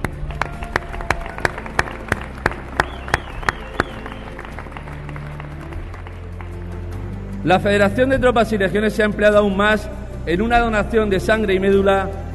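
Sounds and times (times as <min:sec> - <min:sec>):
audience applause: 0:00.0 - 0:07.2
speech: 0:07.4 - 0:12.2.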